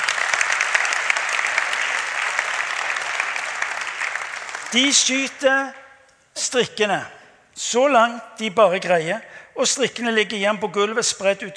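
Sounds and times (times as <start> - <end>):
audience applause: 0.0 - 5.2
speech: 4.7 - 5.8, 6.4 - 11.5.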